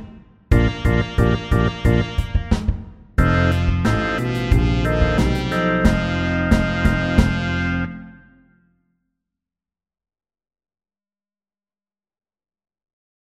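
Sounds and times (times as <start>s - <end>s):
slow twelve-bar blues music: 0.5s - 2.4s, 3.2s - 8.4s.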